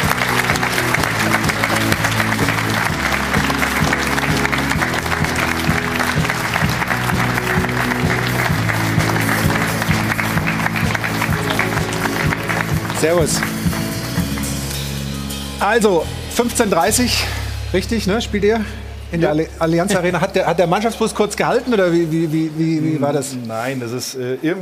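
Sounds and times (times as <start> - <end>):
studio audience applause: 0.0 - 15.5
music playing: 0.0 - 23.5
speech: 13.0 - 13.5, 15.6 - 24.5.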